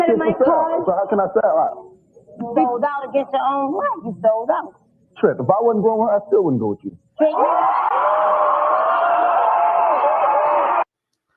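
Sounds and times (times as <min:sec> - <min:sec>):
speech: 0:00.2 - 0:09.1
studio audience cheering and shouting: 0:07.2 - 0:10.8.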